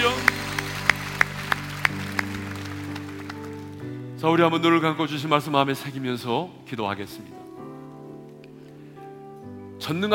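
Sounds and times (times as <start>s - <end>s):
applause: 0.0s - 4.0s
speech: 4.2s - 7.4s, 9.9s - 10.1s.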